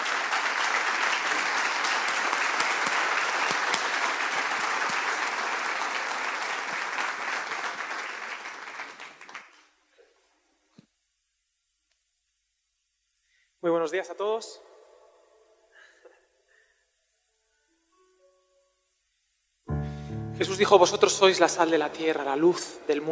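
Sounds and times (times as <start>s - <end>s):
audience applause: 0.0s - 9.8s
speech: 13.8s - 14.7s, 20.4s - 23.1s.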